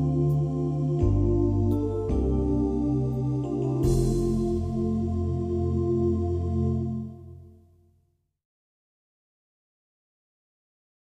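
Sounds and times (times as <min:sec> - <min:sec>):
ambient cello: 0:00.0 - 0:07.6.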